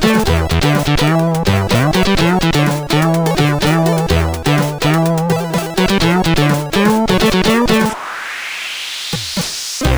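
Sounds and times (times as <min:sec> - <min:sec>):
bass on CSG8580R5: 0:00.0 - 0:08.0.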